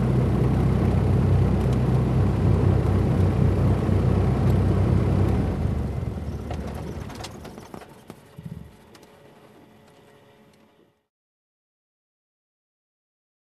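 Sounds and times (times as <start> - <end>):
aircraft engine blades noise: 0.0 - 10.3.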